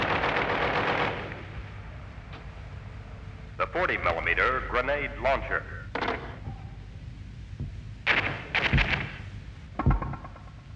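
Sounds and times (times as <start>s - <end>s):
caliber .50 machine gun firing: 0.0s - 1.7s, 8.1s - 10.5s
speech: 3.6s - 5.8s.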